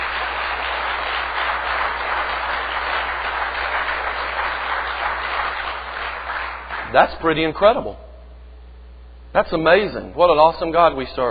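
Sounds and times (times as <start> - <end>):
audience applause: 0.0 - 7.0
speech: 6.9 - 8.0, 9.3 - 11.2.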